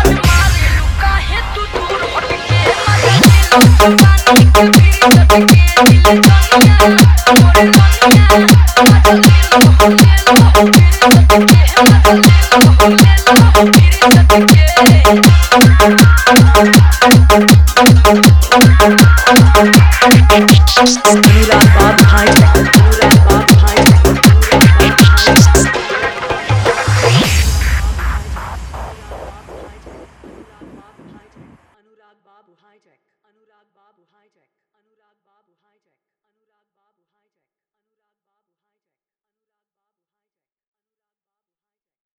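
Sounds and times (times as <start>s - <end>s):
full dholki bass garda dance mix: 0.0s - 31.7s.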